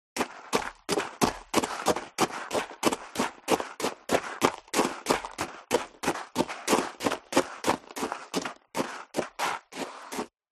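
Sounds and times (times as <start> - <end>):
high heels lightly running on gravel: 0.2 - 10.3.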